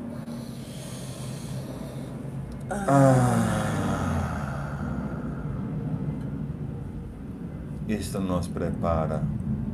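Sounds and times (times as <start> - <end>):
slow deep breath during a guided prayer: 0.1 - 5.9
speech: 2.7 - 3.6, 7.9 - 9.6.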